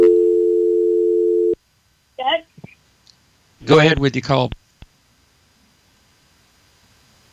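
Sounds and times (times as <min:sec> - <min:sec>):
telephone dial tone after a caller drops off the line: 0:00.0 - 0:01.6
speech: 0:03.7 - 0:04.6.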